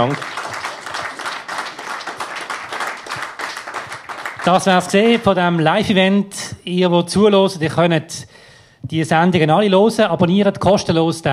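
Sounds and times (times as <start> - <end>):
speech: 0.0 - 0.4, 4.4 - 11.3
audience applause: 0.0 - 6.0.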